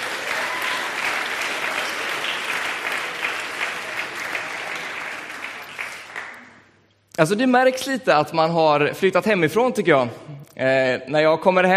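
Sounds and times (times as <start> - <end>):
audience applause: 0.0 - 6.6
speech: 7.2 - 11.7.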